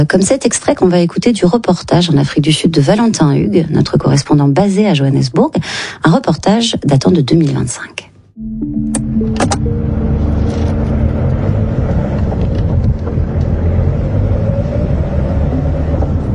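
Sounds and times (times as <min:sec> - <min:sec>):
speech: 0:00.0 - 0:09.9
car driving on a road: 0:09.5 - 0:16.3.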